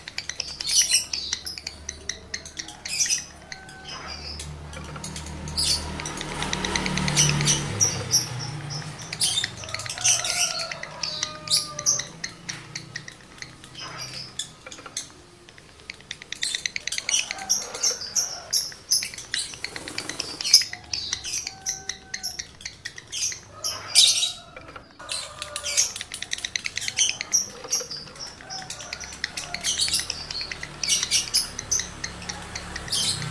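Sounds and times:
lovebird chattering: 0.0 - 33.2.

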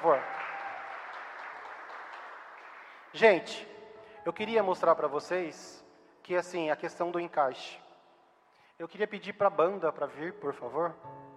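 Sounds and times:
applause: 0.0 - 3.5
speech: 3.1 - 7.8, 8.8 - 11.2.

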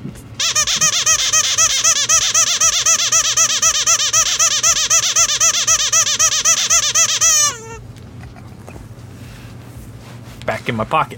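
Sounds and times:
squeezed rubber chicken toy squawking: 0.4 - 7.8
speech: 10.9 - 11.1.

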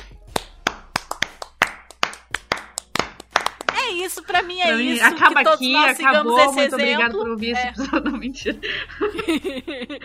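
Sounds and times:
hand clapping: 0.0 - 4.3
speech: 3.9 - 10.0
laughter: 4.3 - 10.0.

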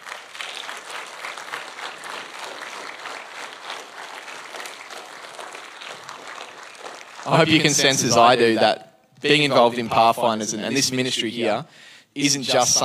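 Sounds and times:
audience applause: 0.0 - 8.4
speech: 7.2 - 12.8.

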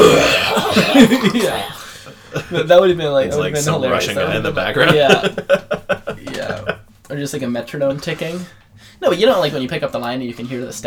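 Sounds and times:
person imitating a wheezy smoker's cough: 0.0 - 1.9
laughter: 0.0 - 7.0
speech: 0.8 - 10.8.

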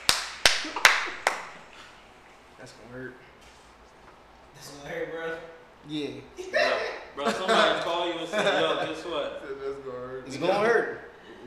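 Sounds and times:
hands clapping: 0.0 - 1.8
speech: 2.6 - 3.3, 4.6 - 11.0.

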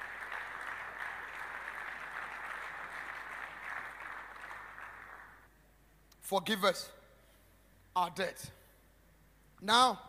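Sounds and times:
crowd clapping: 0.0 - 5.5
speech: 6.3 - 7.0, 8.0 - 8.6, 9.6 - 10.0.

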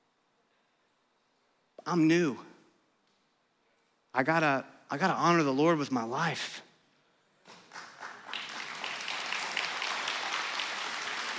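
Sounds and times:
speech: 1.8 - 2.5, 4.2 - 6.7
crowd applause: 7.5 - 11.3.

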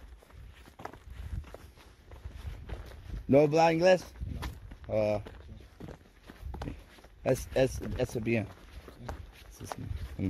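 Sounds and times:
faint footsteps of people running near a large camp: 0.0 - 10.2
speech: 3.3 - 4.2, 4.9 - 5.4, 7.2 - 8.6, 9.6 - 10.2.

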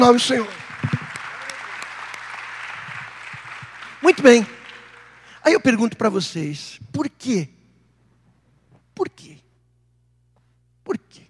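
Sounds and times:
speech: 0.0 - 1.0, 4.0 - 4.6, 5.4 - 7.6
audience applauding: 0.0 - 5.8.

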